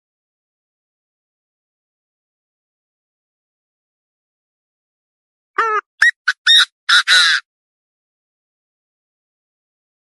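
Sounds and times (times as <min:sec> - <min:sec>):
partridge calls: 0:05.6 - 0:07.4.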